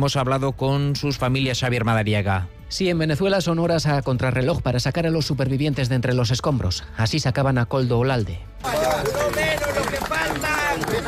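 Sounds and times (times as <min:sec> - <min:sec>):
speech: 0:00.0 - 0:09.2
neighbours applauding during rescue: 0:08.6 - 0:11.0.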